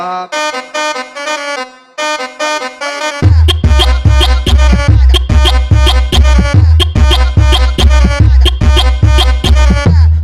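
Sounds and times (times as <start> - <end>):
funk music with heavy bass: 3.1 - 10.2.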